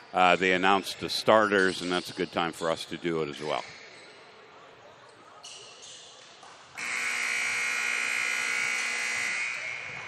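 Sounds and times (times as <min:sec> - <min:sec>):
speech: 0:00.1 - 0:03.8
arena game buzzer: 0:06.8 - 0:10.0.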